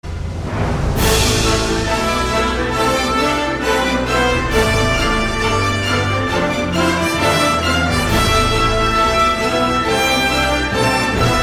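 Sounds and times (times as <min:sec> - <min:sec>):
orchestral music: 0:00.0 - 0:11.4.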